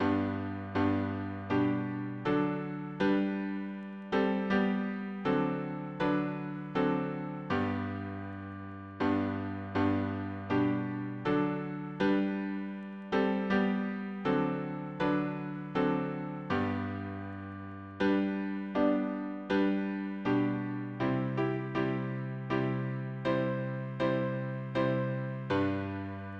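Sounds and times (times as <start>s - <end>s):
piano harmony: 0.0s - 26.3s.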